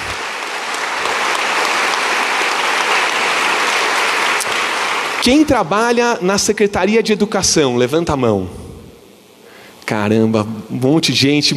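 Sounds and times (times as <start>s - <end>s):
audience applause: 0.0s - 5.7s
speech: 5.2s - 8.6s, 9.9s - 11.5s.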